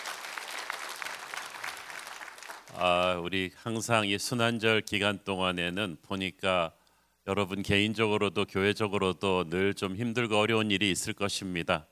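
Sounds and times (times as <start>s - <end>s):
audience applause for the choir: 0.0s - 3.2s
speech: 2.8s - 11.8s.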